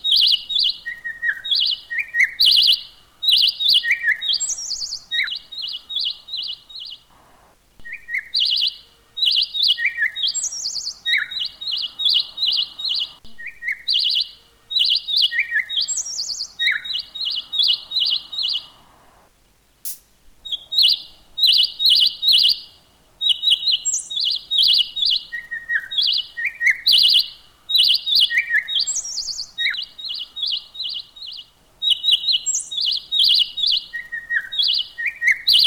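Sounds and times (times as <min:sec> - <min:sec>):
bird singing trills: 0:00.0 - 0:07.1, 0:07.8 - 0:18.8, 0:20.4 - 0:35.6.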